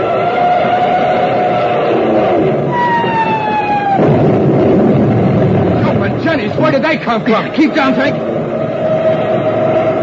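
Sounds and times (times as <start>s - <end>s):
jet dive bombers diving: 0.0s - 10.0s
speech: 6.7s - 8.3s.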